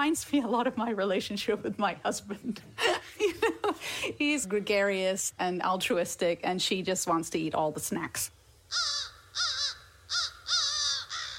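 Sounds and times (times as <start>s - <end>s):
speech: 0.0s - 9.5s
crow cawing: 8.7s - 11.3s.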